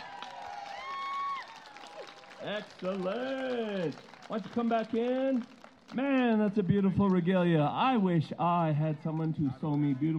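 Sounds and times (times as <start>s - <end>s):
audience applause: 0.0s - 6.0s
speech: 2.4s - 10.1s.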